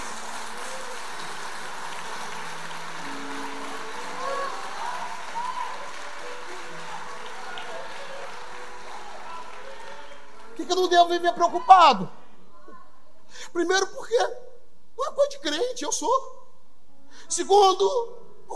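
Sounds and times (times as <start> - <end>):
audience applause: 0.0 - 11.5
speech: 10.6 - 12.2, 13.5 - 14.4, 15.2 - 16.4, 17.3 - 18.5.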